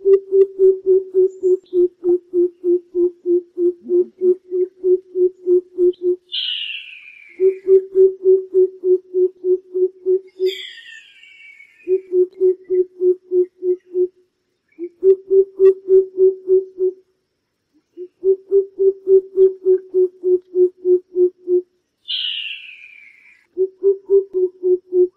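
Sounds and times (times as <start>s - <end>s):
greater coucal hooting: 0.0s - 14.2s, 14.8s - 17.0s, 18.0s - 25.1s
bird chattering call: 1.0s - 7.9s, 10.2s - 12.8s, 22.0s - 23.4s.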